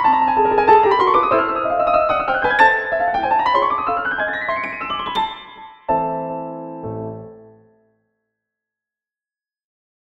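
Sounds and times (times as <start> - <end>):
piano piece on a Czech grand piano: 0.0 - 7.9.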